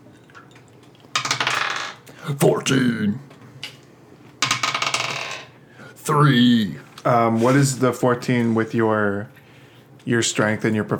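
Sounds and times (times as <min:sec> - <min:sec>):
two d20 dice rolling on a hard tabletop: 0:01.1 - 0:02.0, 0:04.4 - 0:05.5
speech: 0:02.2 - 0:03.3, 0:06.1 - 0:09.4, 0:10.0 - 0:10.9.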